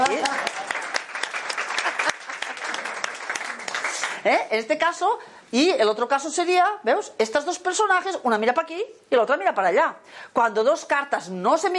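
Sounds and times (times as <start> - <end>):
audience applause: 0.0 - 4.2
speech: 4.2 - 11.7.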